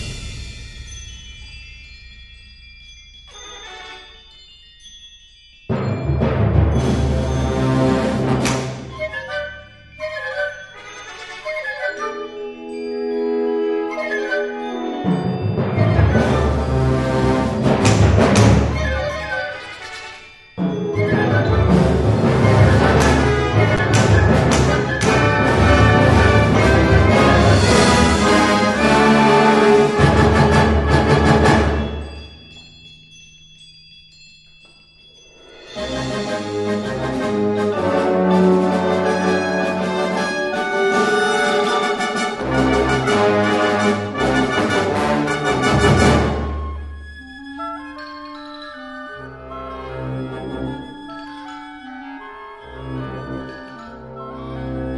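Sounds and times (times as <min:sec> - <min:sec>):
fanfare: 0:03.4 - 0:04.3, 0:05.7 - 0:32.3, 0:35.7 - 0:46.9.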